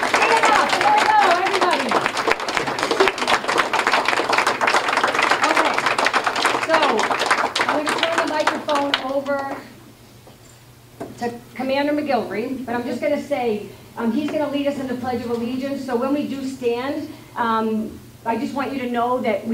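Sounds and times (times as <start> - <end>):
audience applause: 0.0 - 9.7
speech: 12.1 - 19.5.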